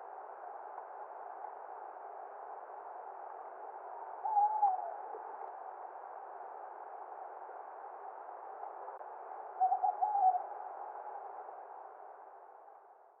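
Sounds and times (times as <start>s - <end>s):
constant hiss: 0.0s - 13.1s
tawny owl hooting: 4.2s - 5.0s, 9.6s - 10.5s.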